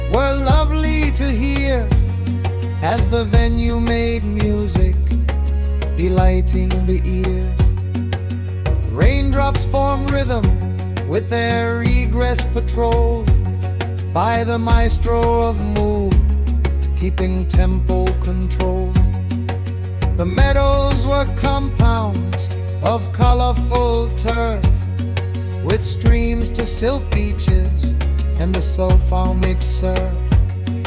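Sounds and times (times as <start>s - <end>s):
African drums: 0.5s - 30.8s.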